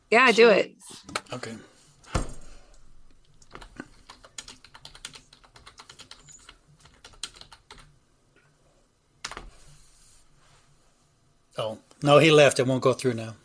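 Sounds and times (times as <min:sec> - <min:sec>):
speech: 0:00.1 - 0:01.7, 0:11.6 - 0:13.4
typing a message on a computer keyboard for a Zoom chat: 0:03.4 - 0:07.9.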